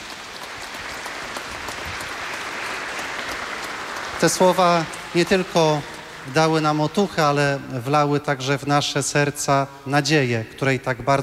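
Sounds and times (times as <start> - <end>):
audience applause: 0.0 - 7.8
speech: 4.2 - 11.2.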